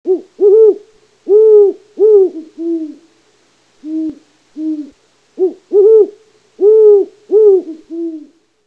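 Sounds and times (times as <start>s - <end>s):
great horned owl: 0.1s - 3.1s, 3.8s - 8.4s.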